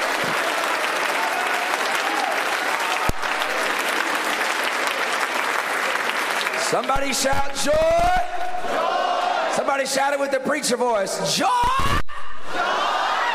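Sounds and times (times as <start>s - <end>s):
audience clapping: 0.0s - 9.4s
speech: 6.7s - 9.0s, 9.6s - 12.9s.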